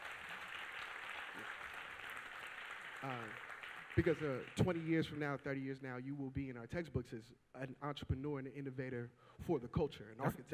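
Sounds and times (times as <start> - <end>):
audience applause: 0.0 - 4.9
speech: 3.0 - 3.4, 4.0 - 10.5.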